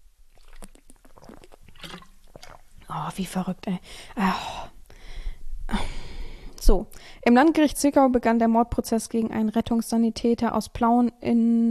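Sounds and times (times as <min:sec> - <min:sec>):
person sipping a drink: 0:00.3 - 0:02.9
speech: 0:02.9 - 0:04.7, 0:06.7 - 0:11.6.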